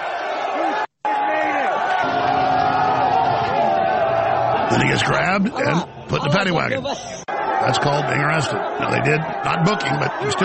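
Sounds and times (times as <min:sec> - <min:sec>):
crowd cheering: 0:00.0 - 0:10.4
speech: 0:04.7 - 0:10.4.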